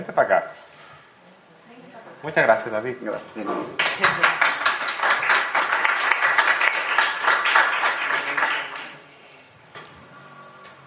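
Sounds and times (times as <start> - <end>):
speech: 0.0 - 0.7, 2.2 - 4.6
audience applause: 3.7 - 9.1.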